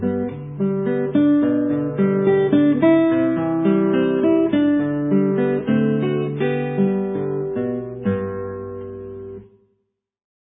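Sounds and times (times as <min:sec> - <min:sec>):
guitar playing andante: 0:00.0 - 0:09.6.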